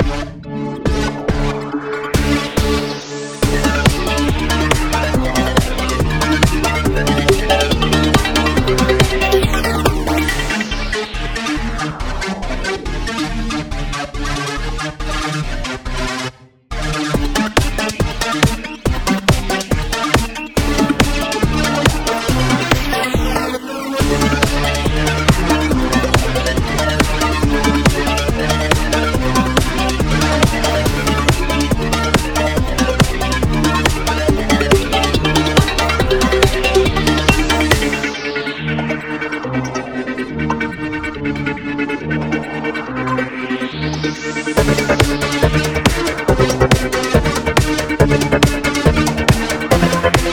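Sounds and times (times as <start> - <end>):
hippie crackhead music: 0.0 - 50.3.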